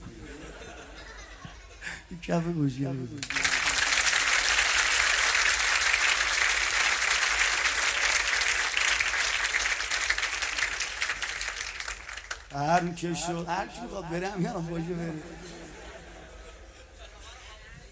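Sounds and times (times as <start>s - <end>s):
laughter: 0.0s - 2.1s, 13.2s - 17.7s
speech: 2.1s - 3.4s, 12.6s - 15.5s
crowd clapping: 3.2s - 13.5s.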